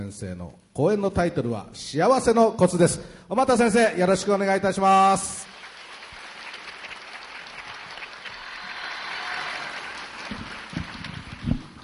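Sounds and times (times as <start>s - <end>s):
speech: 0.0s - 5.5s
audience applause welcoming a speaker: 5.4s - 11.8s.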